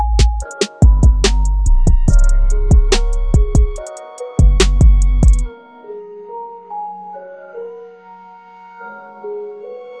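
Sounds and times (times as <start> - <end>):
big beat music: 0.0 - 5.5.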